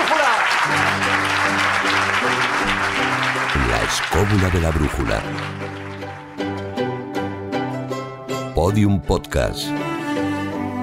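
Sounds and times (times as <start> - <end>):
audience clapping: 0.0 - 7.1
sustained musical chord sequence: 0.6 - 10.8
speech: 4.2 - 5.7, 8.6 - 9.9.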